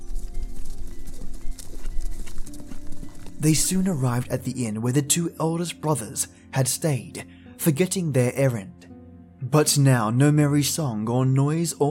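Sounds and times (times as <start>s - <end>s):
horse hooves clip-clopping: 0.0s - 4.4s
speech: 3.4s - 8.8s, 9.4s - 11.8s.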